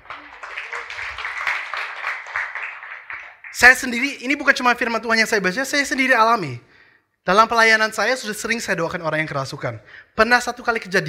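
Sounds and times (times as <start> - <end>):
applause: 0.0 - 4.1
speech: 3.6 - 11.0.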